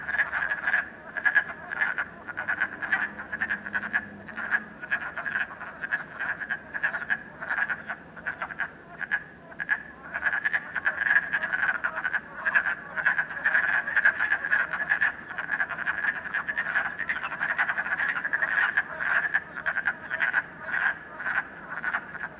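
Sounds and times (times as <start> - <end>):
frogs croaking in a puddle at night: 0.0 - 22.3.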